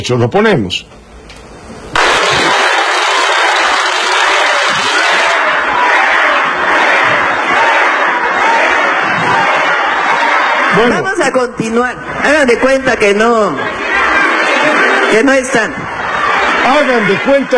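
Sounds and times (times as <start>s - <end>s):
speech: 0.0s - 1.1s, 10.8s - 13.8s, 15.1s - 15.9s, 16.6s - 17.5s
crowd booing: 1.9s - 17.5s.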